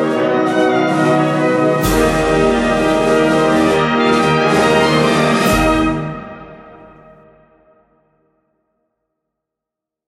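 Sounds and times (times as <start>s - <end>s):
march music: 0.0s - 7.5s.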